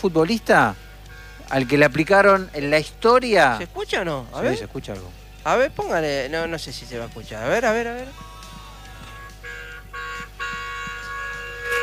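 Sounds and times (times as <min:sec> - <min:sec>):
speech: 0:00.0 - 0:00.8, 0:01.5 - 0:08.3
car horn honking: 0:00.6 - 0:02.8, 0:07.6 - 0:11.8.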